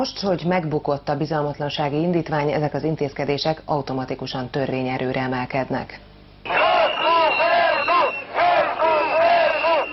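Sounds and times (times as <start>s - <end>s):
speech: 0.0s - 6.6s
protesters shouting outside parliament: 6.5s - 9.9s.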